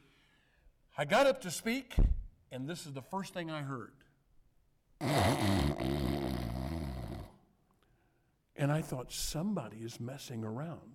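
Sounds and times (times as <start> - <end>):
speech: 1.0 - 4.1, 8.6 - 10.9
person snoring: 5.0 - 7.4.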